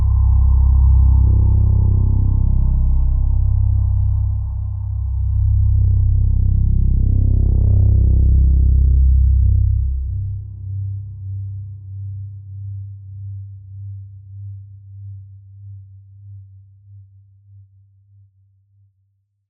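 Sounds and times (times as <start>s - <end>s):
horror music: 0.0s - 10.8s.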